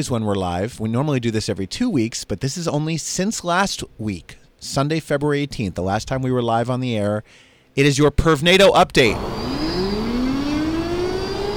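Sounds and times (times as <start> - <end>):
speech: 0.0 - 9.4
siren sound effect: 9.1 - 11.5.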